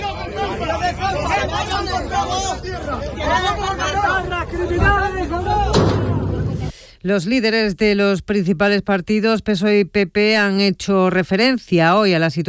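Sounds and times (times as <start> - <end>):
crowd shouting: 0.0 - 6.7
speech: 7.0 - 12.4.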